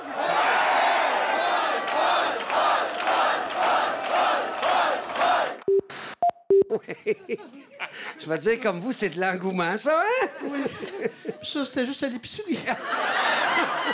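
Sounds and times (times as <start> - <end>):
crowd cheering and shouting: 0.0 - 5.6
laughter: 6.7 - 8.3, 10.0 - 11.6, 12.4 - 13.9
speech: 6.9 - 13.9.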